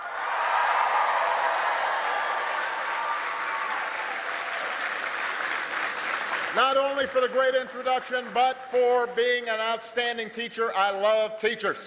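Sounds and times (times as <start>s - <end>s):
audience applause: 0.0s - 7.4s
speech: 6.6s - 11.8s.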